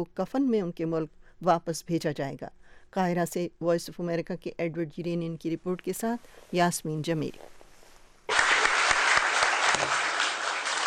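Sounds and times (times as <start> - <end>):
speech: 0.0 - 7.6
audience applause at press conference: 8.3 - 10.8.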